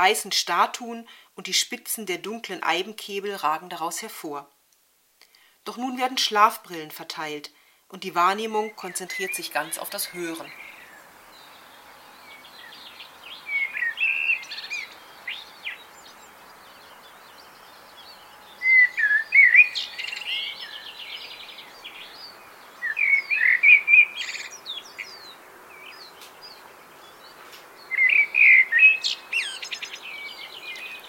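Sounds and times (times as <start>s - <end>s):
speech: 0.0s - 4.6s, 5.6s - 10.6s
low traffic hum: 8.0s - 31.0s
birdsong in a misty morning park: 8.5s - 31.0s.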